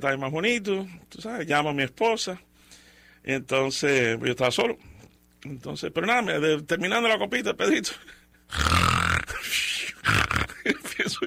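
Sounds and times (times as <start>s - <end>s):
speech: 0.0s - 2.5s, 3.2s - 8.8s
voice imitating snoring: 8.5s - 10.7s.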